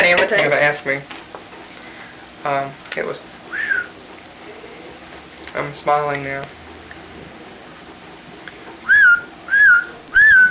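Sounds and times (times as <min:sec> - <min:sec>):
speech: 0:00.0 - 0:01.2, 0:02.4 - 0:03.3, 0:05.6 - 0:06.6
person whistling to call a horse: 0:08.9 - 0:10.4.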